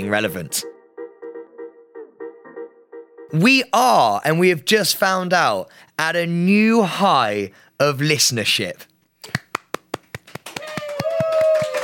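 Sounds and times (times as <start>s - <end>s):
speech: 0.0s - 0.8s, 3.3s - 9.4s
muted hand clap: 9.2s - 11.8s.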